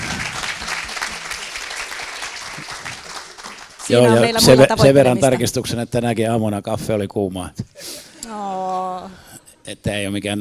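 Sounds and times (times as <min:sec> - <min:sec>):
audience applause: 0:00.0 - 0:05.6
speech: 0:03.9 - 0:10.4.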